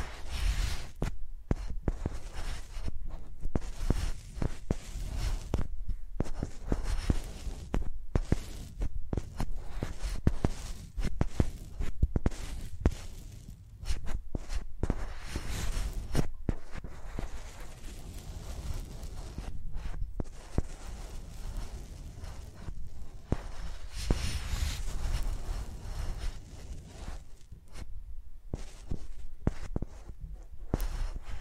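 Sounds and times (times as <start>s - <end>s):
microphones used like pencils scratching, tapping and rubbing: 0.0s - 31.3s.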